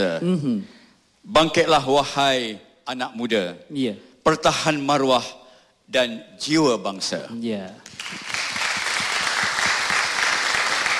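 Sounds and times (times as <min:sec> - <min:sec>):
speech: 0:00.0 - 0:08.4
small audience clapping after Malay verses are recited: 0:07.8 - 0:10.9.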